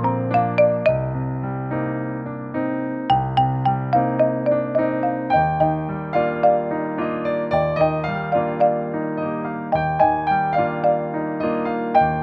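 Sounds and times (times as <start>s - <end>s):
clavier piano playing: 0.0s - 12.2s.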